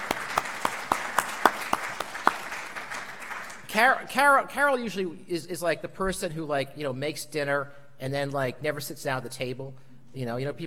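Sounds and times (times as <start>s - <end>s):
audience applause: 0.0s - 3.6s
speech: 3.8s - 10.6s.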